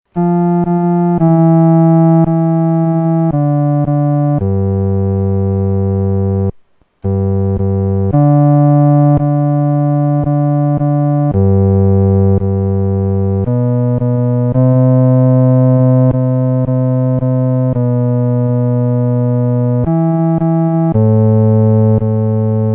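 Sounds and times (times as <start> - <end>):
solo instrument: 0.1 - 22.7.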